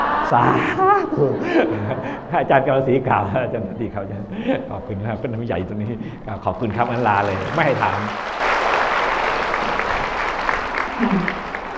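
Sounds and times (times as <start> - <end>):
laughter: 0.0 - 11.7
speech: 0.3 - 8.5, 11.0 - 11.4
applause in a meeting hall: 6.5 - 11.7.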